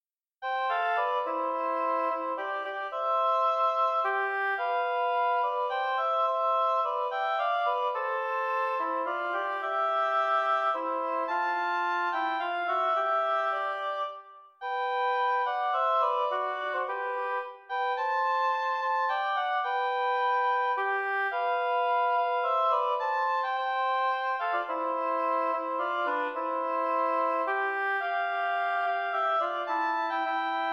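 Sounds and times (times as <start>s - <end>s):
intermediate oboe duet in C major: 0.4s - 30.7s.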